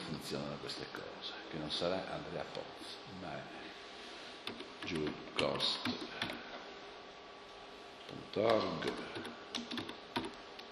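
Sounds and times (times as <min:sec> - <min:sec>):
speech: 0:00.3 - 0:03.7, 0:04.5 - 0:06.4, 0:08.1 - 0:09.4
computer keyboard typing: 0:04.4 - 0:06.4, 0:08.5 - 0:10.4.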